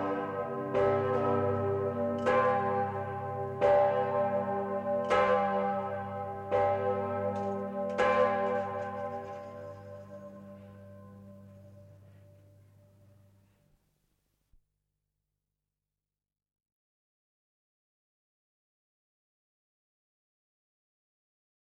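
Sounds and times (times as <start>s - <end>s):
Mariazell bells ringing: 0.0s - 13.3s.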